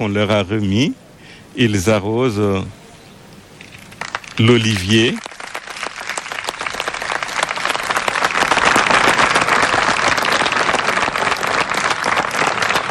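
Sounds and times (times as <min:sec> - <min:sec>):
speech: 0:00.0 - 0:01.0, 0:01.6 - 0:02.8, 0:04.4 - 0:05.3
sustained applause from staff: 0:03.7 - 0:12.8.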